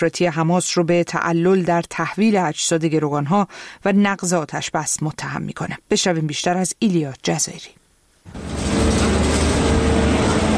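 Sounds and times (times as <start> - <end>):
speech: 0.0 - 9.0
loaders working in search for bodies in the Gaza Strip: 8.3 - 10.5.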